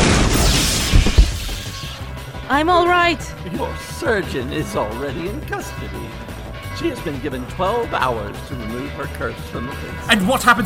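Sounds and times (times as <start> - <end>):
lightning bolt strike: 0.0 - 2.1
speech: 2.5 - 10.6.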